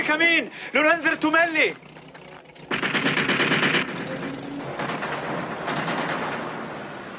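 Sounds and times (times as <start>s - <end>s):
speech: 0.1s - 1.9s
warning shots, automatic gunfire: 2.7s - 7.1s.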